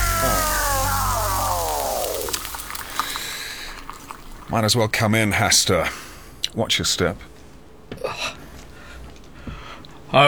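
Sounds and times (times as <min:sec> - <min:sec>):
descending whistling tone of bucket falling from above a door: 0:00.0 - 0:03.3
bucket clattering: 0:00.0 - 0:04.6
bucket of water splashing: 0:00.0 - 0:05.1
speech: 0:04.5 - 0:07.3.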